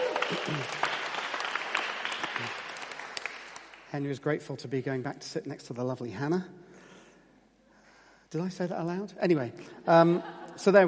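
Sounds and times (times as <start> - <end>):
laughter: 0.0 - 0.9, 9.9 - 10.8
audience applause: 0.0 - 3.9
speech: 0.3 - 0.9, 3.9 - 6.6, 8.3 - 10.8.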